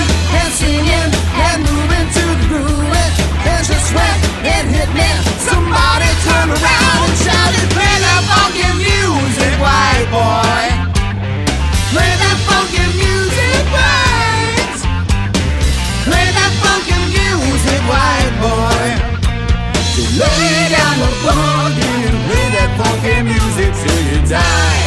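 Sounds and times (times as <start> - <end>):
rock band playing: 0.0 - 24.8.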